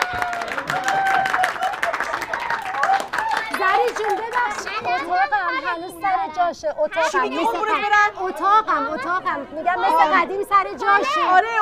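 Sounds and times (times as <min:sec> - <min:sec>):
people clapping at a family gathering: 0:00.0 - 0:05.6
voices calling and cheering: 0:00.0 - 0:11.6
speech: 0:05.7 - 0:11.6.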